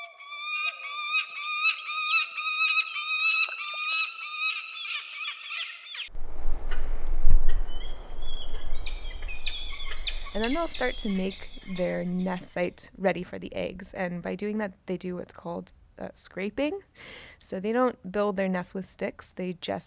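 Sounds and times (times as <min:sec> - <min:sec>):
Peregrine Falcon calls: 0:00.0 - 0:06.1, 0:07.6 - 0:12.8
low rumbling noise: 0:06.1 - 0:12.6
speech: 0:10.4 - 0:19.8.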